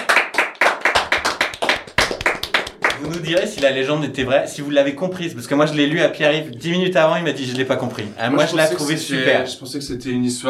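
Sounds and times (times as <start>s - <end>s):
applause: 0.0s - 3.8s
speech: 3.0s - 10.4s.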